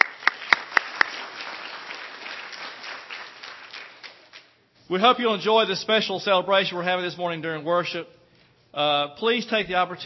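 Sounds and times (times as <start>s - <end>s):
audience applause: 0.0s - 4.5s
speech: 4.9s - 10.0s.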